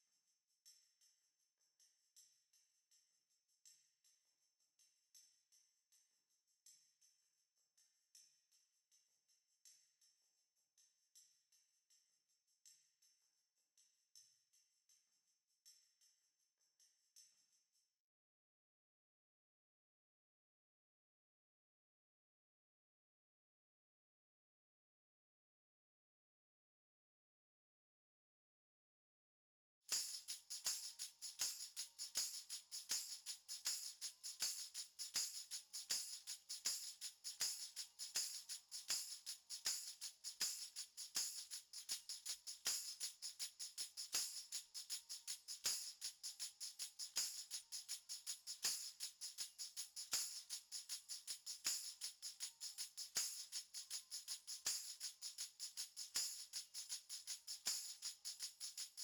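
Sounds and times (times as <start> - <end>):
percussion: 0.0 - 16.2, 29.8 - 59.0.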